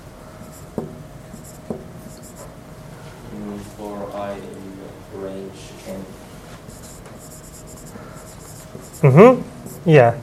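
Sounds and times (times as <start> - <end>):
handwriting scratching on a surface: 1.4 - 2.5, 6.6 - 9.0
speech: 5.2 - 6.2, 9.0 - 10.2.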